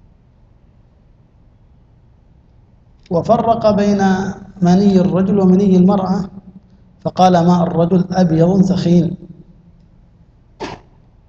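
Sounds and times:
quiet hum: 0.0 - 11.2
speech: 3.1 - 6.4, 7.0 - 9.2
sneeze: 10.6 - 11.0.

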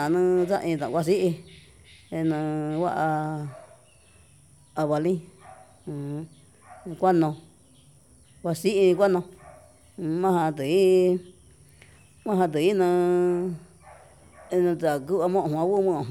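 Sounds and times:
speech: 0.0 - 3.6, 4.8 - 7.5, 8.4 - 9.4, 10.0 - 11.3, 12.2 - 13.6, 14.5 - 16.0
dog barking: 3.5 - 3.9, 5.4 - 5.8, 6.6 - 7.0, 9.4 - 9.8, 13.8 - 14.7.

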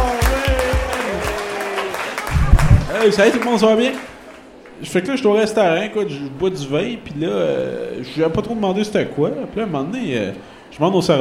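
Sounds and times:
audience applause welcoming a comedian at a comedy show: 0.0 - 4.8
low thumps: 2.3 - 2.9
speech: 3.0 - 4.1, 4.8 - 11.1.

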